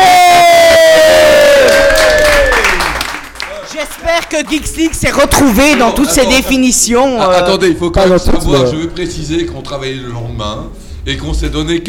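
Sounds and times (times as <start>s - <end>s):
crowd applauding and cheering: 0.0s - 6.2s
speech: 4.3s - 11.8s.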